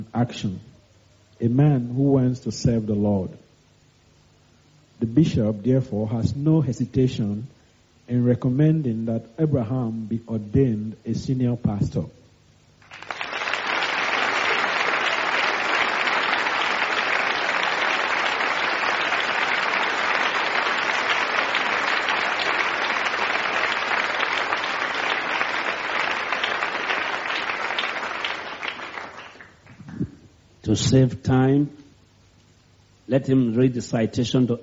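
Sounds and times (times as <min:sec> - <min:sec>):
speech: 0:00.0 - 0:00.7, 0:01.4 - 0:03.4, 0:05.0 - 0:12.2, 0:30.7 - 0:31.8, 0:33.1 - 0:34.6
audience applause: 0:12.8 - 0:29.8.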